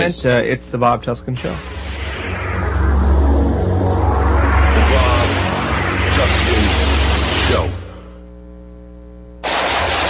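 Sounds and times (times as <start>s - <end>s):
speech: 0.0s - 2.0s
low hum: 0.0s - 10.0s
rapid gunfire in a radio ad: 9.4s - 10.0s.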